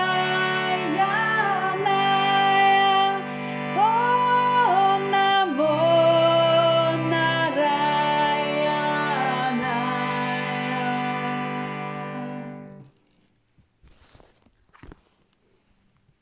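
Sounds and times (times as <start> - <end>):
person chanting first voice part: 0.0 - 11.7.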